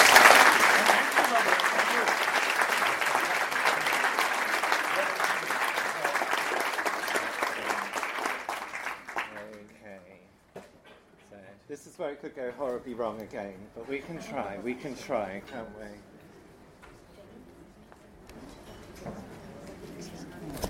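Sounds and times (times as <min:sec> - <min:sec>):
audience applause: 0:00.0 - 0:09.6
speech: 0:12.1 - 0:16.1.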